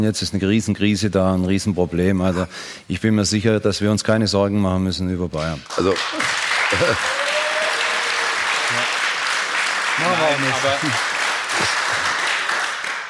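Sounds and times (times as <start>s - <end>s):
speech: 0.0s - 7.2s, 10.0s - 11.7s
audience applause: 5.7s - 13.0s
laughter: 6.2s - 7.3s, 10.3s - 12.2s.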